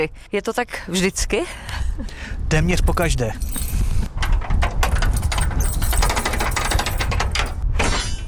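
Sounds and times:
speech: 0:00.0 - 0:03.7
chapel door being unlocked and opened: 0:04.2 - 0:08.0.

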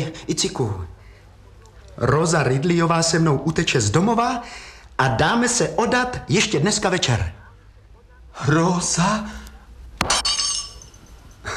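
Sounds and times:
speech: 0:00.0 - 0:01.0, 0:02.0 - 0:07.4, 0:08.4 - 0:09.4
glass breaking into shards: 0:10.0 - 0:11.2.

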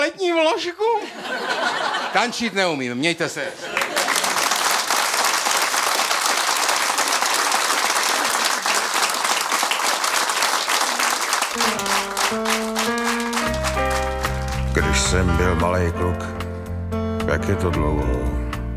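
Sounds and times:
speech: 0:00.5 - 0:03.8, 0:12.3 - 0:12.8, 0:15.0 - 0:16.4, 0:17.3 - 0:18.4
laughter: 0:00.9 - 0:02.6, 0:03.4 - 0:04.6
audience applause: 0:03.7 - 0:15.0.

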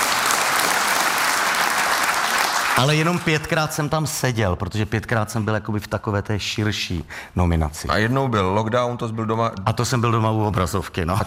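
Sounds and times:
theatre audience applauding: 0:00.0 - 0:03.6
speech: 0:02.8 - 0:11.2.

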